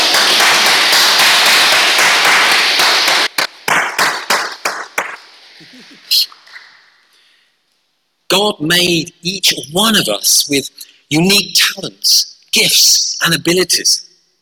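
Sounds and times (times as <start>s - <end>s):
round of applause: 0.0s - 5.2s
speech: 8.4s - 14.1s.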